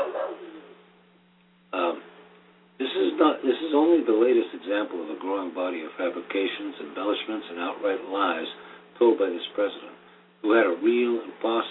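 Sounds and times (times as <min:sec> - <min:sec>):
dog barking: 0:00.0 - 0:00.6
speech: 0:03.2 - 0:11.6.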